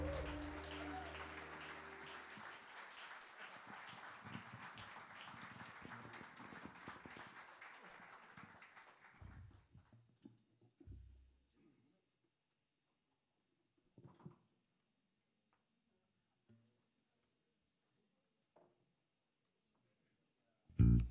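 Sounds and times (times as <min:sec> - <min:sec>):
sustained musical chord: 0:00.0 - 0:02.5
large audience applause: 0:00.0 - 0:09.2.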